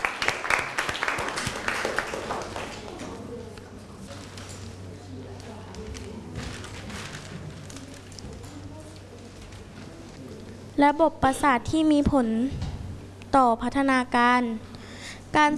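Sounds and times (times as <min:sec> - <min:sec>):
classroom applause: 0:00.0 - 0:03.3
speech: 0:10.8 - 0:12.6, 0:13.3 - 0:14.7, 0:15.3 - 0:15.5.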